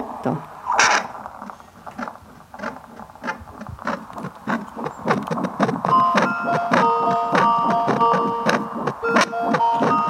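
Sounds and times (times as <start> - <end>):
speech: 0.2 - 0.5
heartbeat through fetal doppler: 1.9 - 10.0
beeping electronic warning melody from fetal doppler: 5.7 - 10.0.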